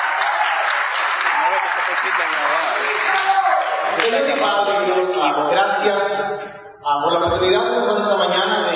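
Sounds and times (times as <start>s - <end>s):
audience applause: 0.0s - 5.2s
speech: 2.1s - 3.4s, 4.0s - 8.6s.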